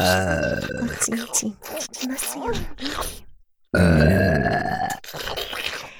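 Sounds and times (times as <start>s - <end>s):
burp: 0.0s - 1.2s, 3.7s - 5.6s
speech: 0.0s - 4.2s.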